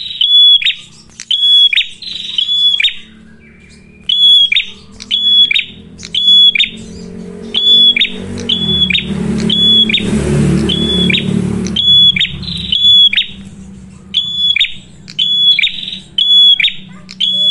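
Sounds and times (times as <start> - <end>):
red-headed prenjak singing energetically with shrill whistles and harsh buzzes: 0.0 - 17.4.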